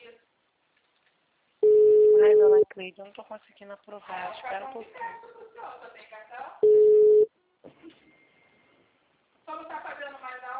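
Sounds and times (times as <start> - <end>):
telephone busy tone after a dropped call: 1.6 - 2.6, 6.6 - 7.3
speech: 2.8 - 6.0.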